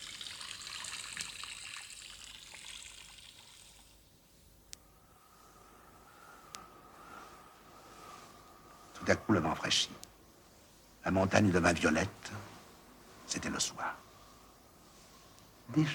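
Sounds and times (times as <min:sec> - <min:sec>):
babbling spring water trickling: 0:00.0 - 0:04.0
speech: 0:09.0 - 0:10.1, 0:11.1 - 0:12.5, 0:13.3 - 0:14.0, 0:15.7 - 0:15.9.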